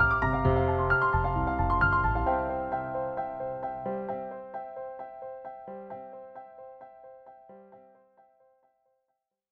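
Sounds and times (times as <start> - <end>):
noodle piano: 0.0 - 6.4.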